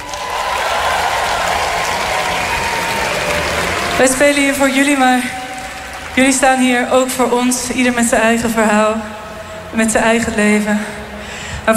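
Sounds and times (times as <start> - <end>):
festival crowd applause: 0.0 - 8.7
speech: 4.0 - 5.4, 6.2 - 11.0.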